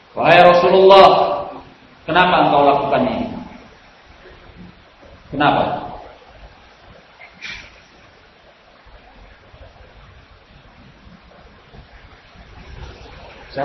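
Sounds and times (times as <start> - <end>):
rain: 0.0 - 13.6
speech: 0.2 - 1.3, 2.1 - 3.3, 5.3 - 5.8.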